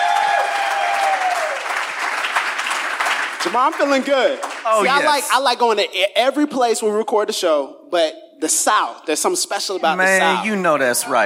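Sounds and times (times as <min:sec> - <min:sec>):
crowd applause at Cornerstone Church in Atlanta: 0:00.0 - 0:05.4
speech: 0:03.4 - 0:11.2.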